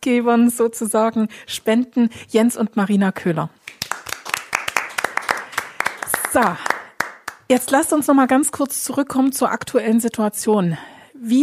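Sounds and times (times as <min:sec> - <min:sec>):
speech: 0:00.0 - 0:03.6, 0:06.3 - 0:06.7, 0:07.5 - 0:11.4
small group applause: 0:03.6 - 0:07.5.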